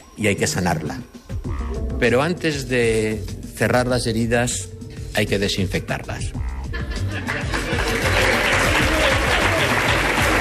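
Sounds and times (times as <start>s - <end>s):
speech: 0.2s - 7.4s
scattered laughter: 6.6s - 8.8s
crowd applause: 7.1s - 10.3s.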